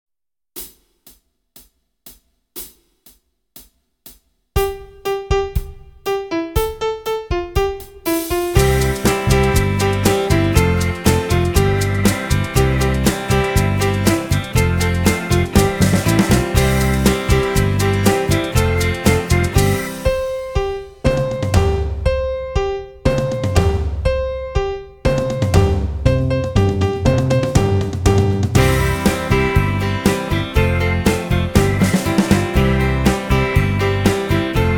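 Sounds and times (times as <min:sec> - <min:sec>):
keyboard: 0:04.7 - 0:34.7.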